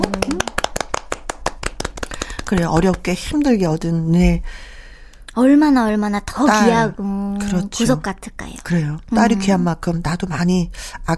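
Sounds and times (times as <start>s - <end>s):
hands clapping: 0.0s - 3.1s
speech: 2.5s - 4.7s, 5.3s - 11.1s.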